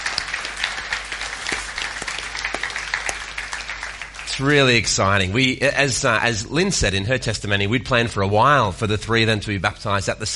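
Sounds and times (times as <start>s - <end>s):
audience applause: 0.0s - 4.8s
speech: 4.4s - 10.3s.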